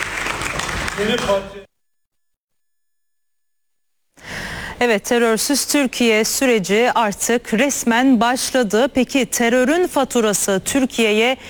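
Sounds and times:
applause from parliament members: 0.0 - 1.7
speech: 1.0 - 1.7, 4.8 - 11.4.

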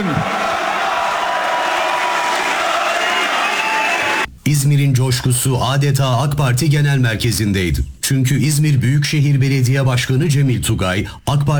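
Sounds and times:
speech: 0.0 - 0.3, 4.5 - 11.5
crowd cheering at an AK Party political rally in a packed hall: 0.0 - 4.3.

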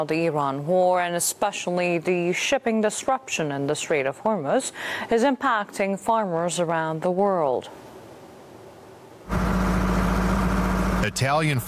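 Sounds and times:
speech: 0.0 - 7.9, 11.0 - 11.6
diesel engine of irrigation pumps in a potato field in Fiumicino: 9.3 - 11.6.

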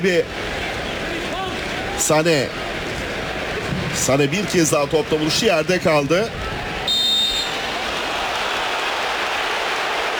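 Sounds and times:
speech: 0.0 - 0.6, 2.0 - 2.7, 4.0 - 6.6
stadium crowd roar: 0.0 - 10.1
referee whistle blast: 6.8 - 7.7.

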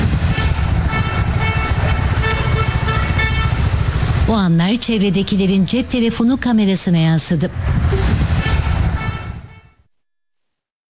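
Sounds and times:
car horns honking at cows crossing a road through traffic: 0.0 - 4.3, 7.7 - 9.9
constant rumble of engines and roadway noise: 0.0 - 9.7
speech: 4.3 - 8.1.

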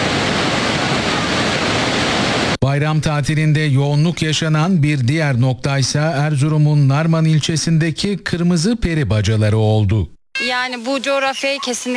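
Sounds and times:
waterfall roaring: 0.0 - 2.6
speech: 2.6 - 11.9.

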